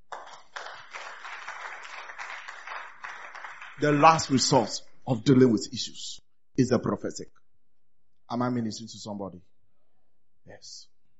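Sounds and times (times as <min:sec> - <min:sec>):
crowd clapping: 0:00.0 - 0:04.8
speech: 0:03.8 - 0:07.4, 0:08.3 - 0:09.5, 0:10.4 - 0:10.9.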